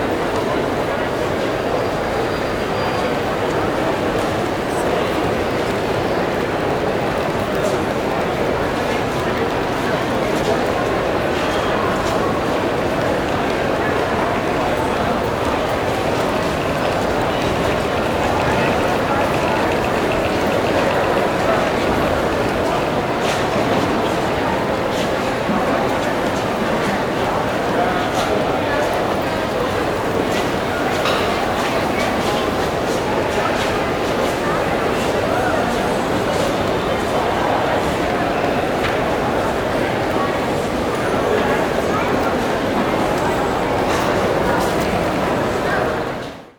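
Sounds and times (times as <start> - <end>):
large train at a station: 0.0 - 46.5
walla at a station: 0.0 - 46.5.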